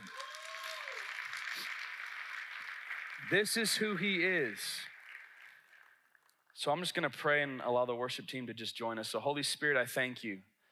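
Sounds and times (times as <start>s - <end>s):
audience applause: 0.0s - 6.3s
speech: 3.2s - 4.9s, 6.6s - 10.5s.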